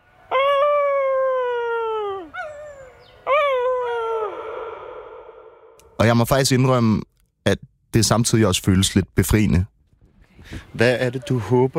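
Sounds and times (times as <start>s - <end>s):
small yelp: 0.3s - 5.0s
person imitating a wolf howl in dark woods: 0.3s - 5.6s
speech: 6.0s - 9.7s, 10.4s - 11.7s.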